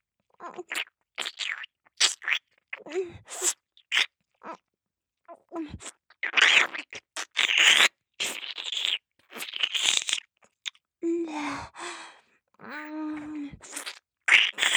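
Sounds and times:
ear licking: 0.5 - 2.5, 5.8 - 10.8, 13.7 - 14.7.

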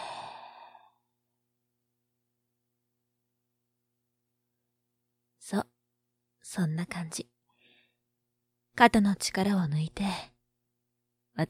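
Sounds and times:
sharp intake of breath: 0.0 - 0.9
soft exhale during a guided relaxation exercise: 0.0 - 1.0
speech: 5.5 - 5.7, 6.5 - 7.3, 8.8 - 10.3.

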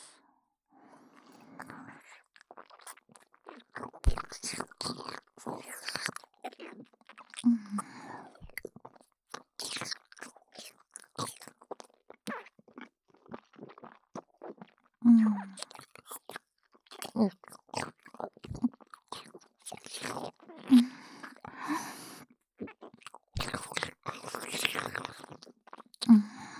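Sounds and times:
person eating and chewing crisp food: 1.1 - 21.8, 22.6 - 26.1.

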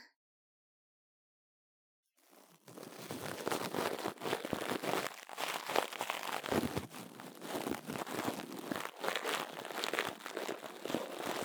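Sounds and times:
rustling of a bonten ear cleaner: 2.3 - 11.4.

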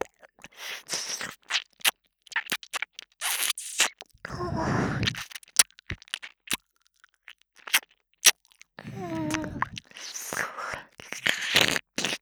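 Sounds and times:
binaural ear licking on the left: 0.3 - 6.4, 7.7 - 12.2
person moaning: 8.9 - 9.8.

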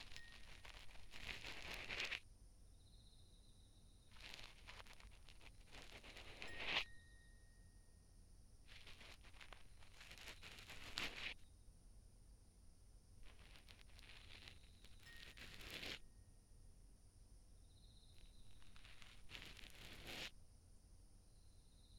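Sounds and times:
cotton swab asmr: 0.0 - 2.2, 4.1 - 6.9, 8.7 - 11.4, 13.3 - 16.0, 18.4 - 20.3.

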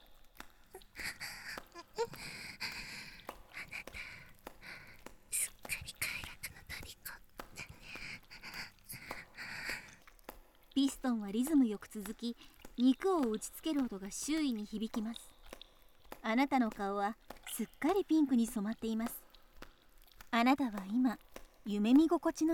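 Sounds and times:
hot heavy breathing close to ear: 0.7 - 5.1, 7.6 - 10.0
speech: 10.8 - 15.3, 16.2 - 19.1, 20.4 - 22.5.

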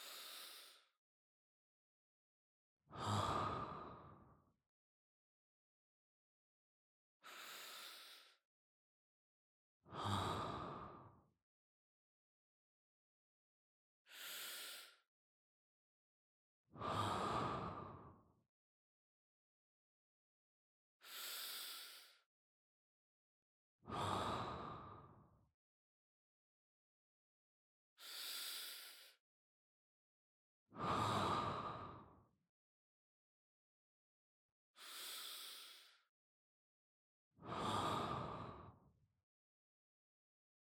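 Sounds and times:
person breathing in sleep: 0.0 - 0.9, 7.2 - 8.4, 9.9 - 11.0, 14.1 - 15.0, 16.8 - 18.1, 21.0 - 22.2, 23.9 - 25.2, 28.0 - 29.2, 30.8 - 32.1, 34.8 - 36.1, 37.4 - 38.8.

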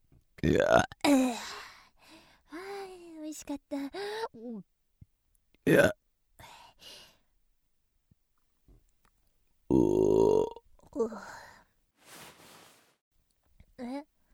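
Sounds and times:
person burping after eating: 0.4 - 1.3, 5.6 - 6.0, 9.7 - 10.6
speech: 0.4 - 1.4, 3.4 - 4.8, 5.7 - 6.0
breaths and vocal sounds: 1.1 - 2.9, 6.4 - 7.3, 10.8 - 13.0.

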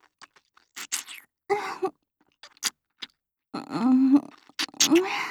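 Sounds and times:
long gentle kiss: 0.2 - 1.2, 2.4 - 2.7, 4.4 - 5.1.

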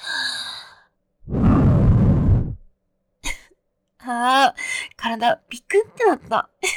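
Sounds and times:
breath blown softly into the ear: 1.2 - 2.7
speech: 5.1 - 6.7.

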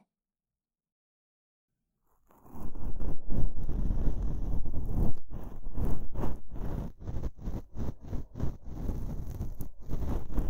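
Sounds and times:
ear cleaning ASMR sounds: 2.3 - 10.4.

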